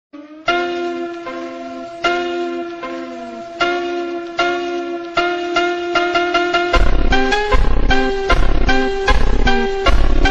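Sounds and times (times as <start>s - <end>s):
ringtone: 0.2s - 10.2s.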